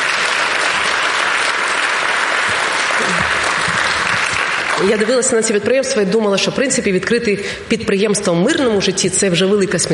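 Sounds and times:
audience applause: 0:00.0 - 0:05.4
speech: 0:04.8 - 0:09.9.

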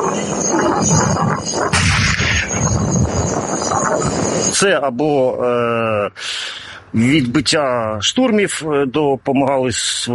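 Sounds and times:
loud low-pitched drone: 0:00.0 - 0:05.1
tank gun shot: 0:01.7 - 0:02.5
speech: 0:04.6 - 0:10.1.

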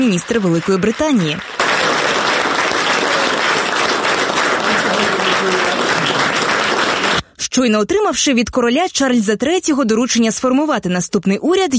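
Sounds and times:
speech: 0:00.0 - 0:01.5, 0:07.6 - 0:11.7
applause as new prime minister arrives at Downing Street 10: 0:00.0 - 0:07.4.

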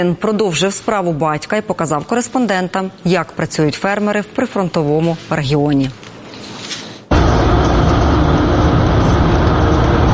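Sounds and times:
speech: 0:00.0 - 0:06.6
car driving under anti-drone nets toward Beryslav: 0:07.1 - 0:10.1.

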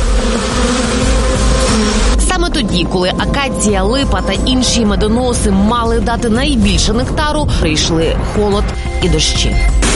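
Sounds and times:
honeybees buzzing: 0:00.0 - 0:05.1
speech: 0:02.9 - 0:09.8.

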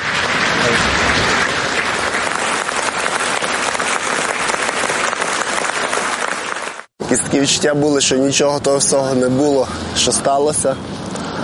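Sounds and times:
audience applause: 0:00.0 - 0:06.9
speech: 0:07.1 - 0:11.0.

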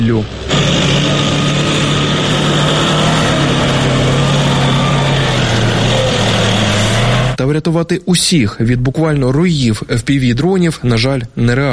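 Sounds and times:
speech: 0:00.0 - 0:00.8, 0:07.4 - 0:11.7
military vehicles driving along a road: 0:00.0 - 0:07.4.

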